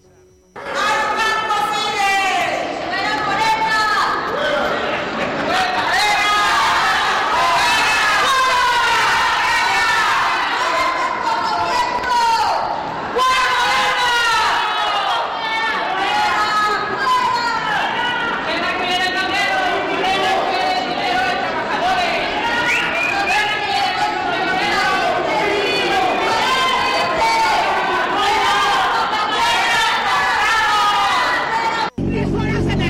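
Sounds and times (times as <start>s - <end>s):
street protest crowd: 0.0s - 32.8s.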